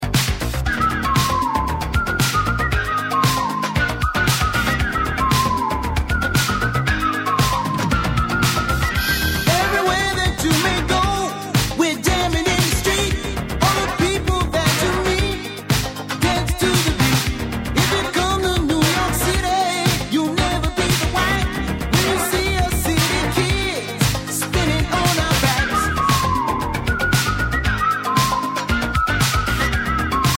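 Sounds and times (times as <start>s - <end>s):
street dance music: 0.0s - 30.3s.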